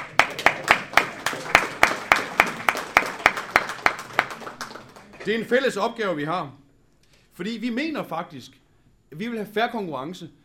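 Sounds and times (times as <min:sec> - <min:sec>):
audience hand clapping: 0:00.0 - 0:05.3
speech: 0:05.2 - 0:06.6, 0:07.4 - 0:10.4.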